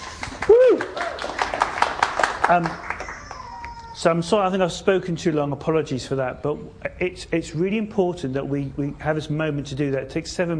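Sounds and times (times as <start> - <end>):
audience round of applause: 0.0 - 3.6
speech: 2.5 - 2.9, 4.0 - 10.5.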